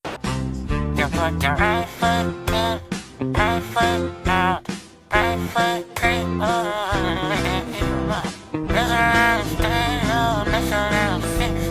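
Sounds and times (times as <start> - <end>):
villager singing: 0.8 - 11.6.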